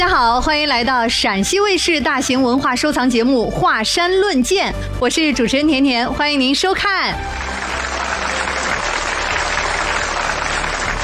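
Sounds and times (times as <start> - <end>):
speech: 0.0 - 7.6
audience applause: 7.2 - 11.0.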